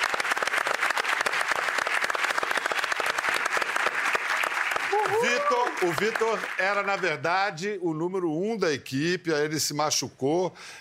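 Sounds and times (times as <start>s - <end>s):
crowd applauding: 0.0s - 7.3s
speech: 5.5s - 10.7s.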